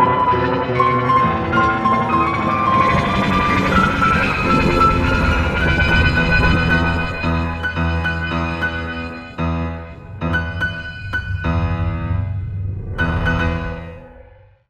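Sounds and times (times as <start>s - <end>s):
computer piano: 0.0s - 14.6s.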